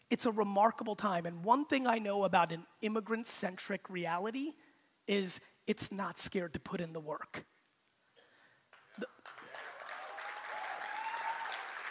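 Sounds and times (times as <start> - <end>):
speech: 0.1 - 7.5, 9.0 - 9.2
audience applause: 8.7 - 11.8.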